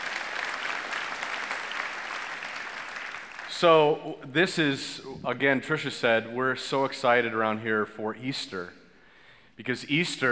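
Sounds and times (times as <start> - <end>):
audience applause: 0.0 - 3.5
speech: 3.6 - 8.8, 9.6 - 10.3.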